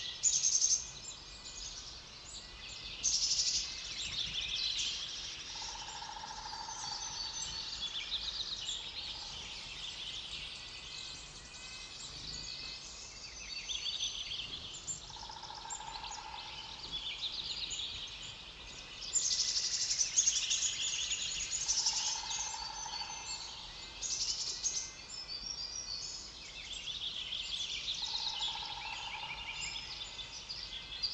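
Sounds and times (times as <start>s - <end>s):
coniferous forest ambience: 0.0s - 31.1s.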